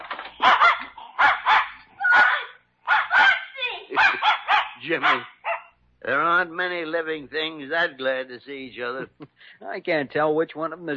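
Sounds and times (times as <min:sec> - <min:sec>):
dog barking excitedly: 0:00.3 - 0:05.8
speech: 0:04.9 - 0:05.4, 0:06.0 - 0:10.9.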